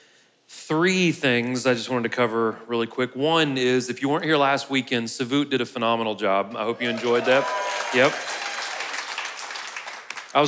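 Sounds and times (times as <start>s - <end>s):
speech: 0.7s - 8.3s
people clapping: 6.8s - 10.4s.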